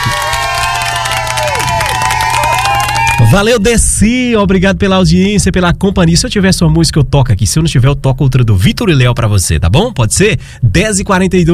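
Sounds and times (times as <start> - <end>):
applause and cheering sound effect: 0.0 - 3.6
speech: 3.3 - 11.5.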